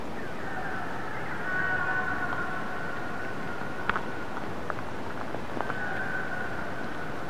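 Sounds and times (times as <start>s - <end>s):
transient orca harmonic tonal call: 0.2s - 4.3s, 5.6s - 7.2s.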